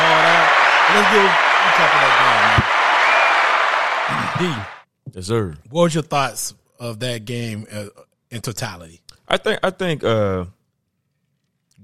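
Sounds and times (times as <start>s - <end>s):
applause: 0.0s - 4.8s
speech: 0.9s - 2.7s, 4.4s - 10.6s.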